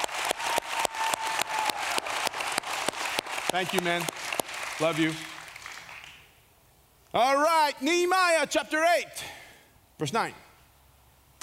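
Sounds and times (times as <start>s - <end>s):
church audience clapping in rhythm: 0.0s - 6.4s
scattered applause: 0.0s - 6.4s
speech: 3.5s - 4.2s, 4.8s - 5.4s, 7.1s - 9.3s, 10.0s - 10.4s.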